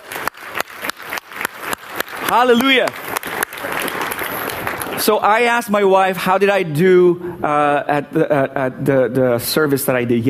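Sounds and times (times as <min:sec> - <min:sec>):
audience clapping in praise: 0:00.0 - 0:05.6
speech: 0:02.3 - 0:03.1, 0:05.0 - 0:10.2.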